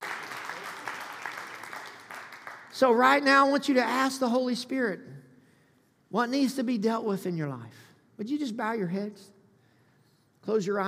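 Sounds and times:
crowd clapping: 0.0 - 3.2
speech: 2.8 - 5.2, 6.1 - 9.4, 10.4 - 10.8.

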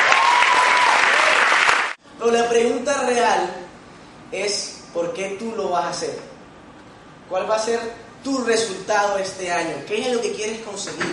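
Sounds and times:
audience applause: 0.0 - 2.0
speech: 2.2 - 3.6, 4.3 - 6.3, 7.3 - 11.1.

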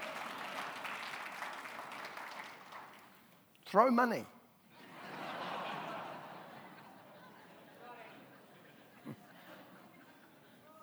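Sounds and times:
crowd applauding: 0.0 - 3.2
speech: 3.7 - 4.4
laughter: 4.8 - 10.7.

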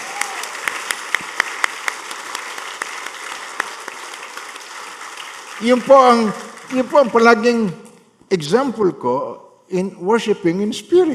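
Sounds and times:
congregation clapping in worship during a Christmas church service: 0.0 - 8.0
speech: 5.6 - 11.1.

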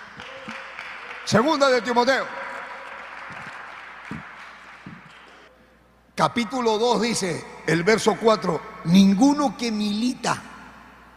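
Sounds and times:
audience clapping: 0.0 - 5.5
speech: 1.3 - 2.4, 6.2 - 10.5.

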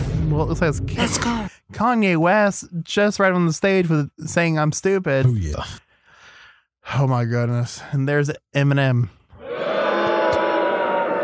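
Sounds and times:
speech: 0.3 - 5.8, 6.9 - 9.2
crowd cheering at a concert: 9.4 - 11.2.

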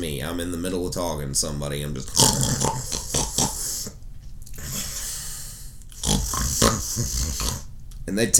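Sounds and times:
speech: 0.2 - 3.4, 7.0 - 8.3
loud snoring: 2.0 - 4.0, 6.0 - 7.7.

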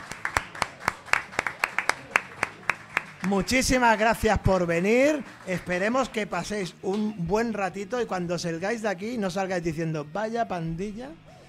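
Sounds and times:
sparse audience applause: 0.0 - 6.2
speech: 3.2 - 11.2.

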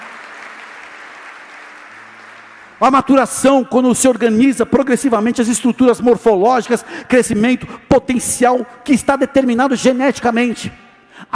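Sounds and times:
large crowd applause: 0.0 - 2.9
speech: 2.8 - 11.3.

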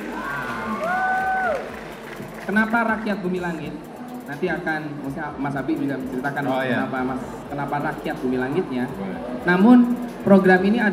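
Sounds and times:
audience cheering: 0.0 - 2.4
audience applause: 0.0 - 3.1
speech: 2.5 - 10.9.

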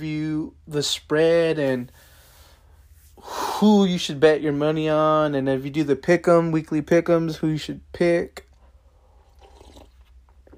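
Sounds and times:
speech: 0.0 - 2.0, 3.2 - 8.5
person sipping cognac: 8.5 - 10.5.

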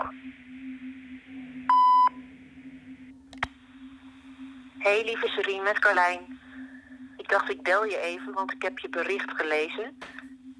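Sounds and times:
low constant hum: 0.0 - 10.5
voicemail electronic beep: 1.7 - 2.2
speech: 4.8 - 6.4, 7.3 - 10.5.

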